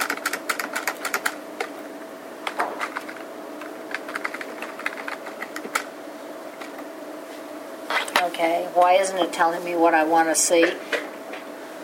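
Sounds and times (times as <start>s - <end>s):
computer keyboard typing: 0.0s - 1.4s, 3.9s - 5.9s
faint steady hum: 0.0s - 11.8s
speech: 8.4s - 10.9s.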